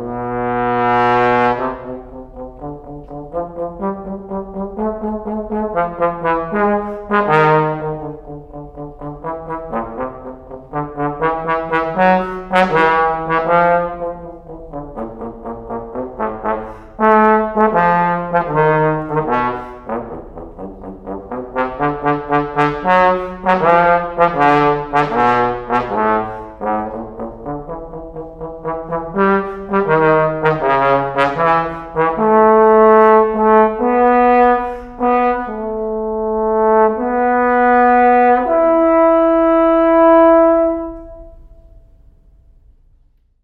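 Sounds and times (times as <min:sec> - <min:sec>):
trombone: 0:00.0 - 0:41.8.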